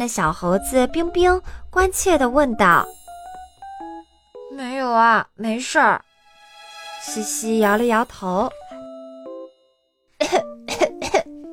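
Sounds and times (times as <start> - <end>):
speech: 0.0 - 3.0, 4.6 - 6.1, 7.0 - 8.6
steady tone: 0.0 - 4.8, 6.0 - 9.2
child coughing: 10.2 - 11.3.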